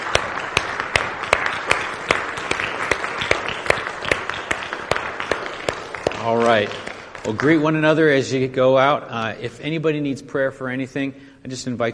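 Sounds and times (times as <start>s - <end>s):
people clapping in praise: 0.0s - 8.5s
speech: 6.2s - 11.9s.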